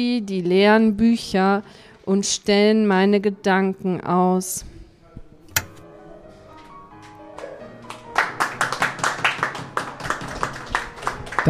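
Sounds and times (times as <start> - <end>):
speech: 0.0 - 4.7
audience applause after a reading: 7.8 - 11.4.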